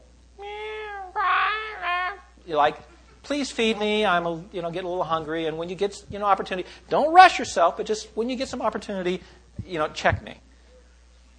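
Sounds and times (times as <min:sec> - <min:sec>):
voice imitating a crying infant: 0:00.4 - 0:02.8
speech: 0:02.5 - 0:10.5.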